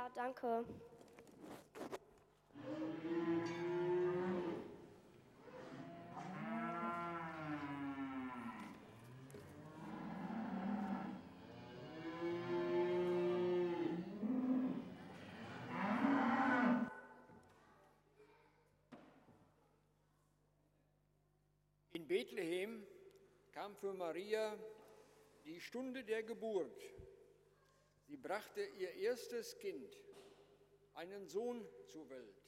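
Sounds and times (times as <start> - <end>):
speech: 0.0 - 1.7, 2.6 - 3.6, 23.6 - 24.8, 25.5 - 27.1, 28.1 - 30.2, 31.0 - 32.4
cattle mooing in a stable in Bethlehem: 2.6 - 4.7, 5.4 - 16.9.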